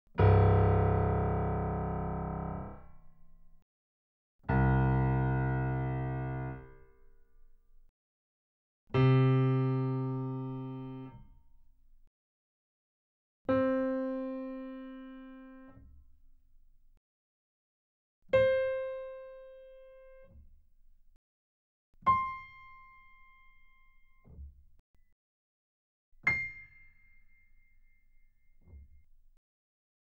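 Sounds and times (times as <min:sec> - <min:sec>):
piano with hammered strings: 0:00.1 - 0:03.6, 0:04.4 - 0:07.9, 0:08.9 - 0:12.1, 0:13.5 - 0:16.4, 0:18.2 - 0:21.2, 0:22.0 - 0:25.2, 0:26.2 - 0:29.4.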